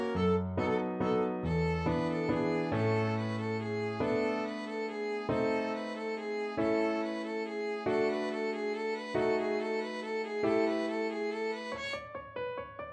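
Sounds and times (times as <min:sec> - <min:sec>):
waltz on violin: 0:00.0 - 0:12.4.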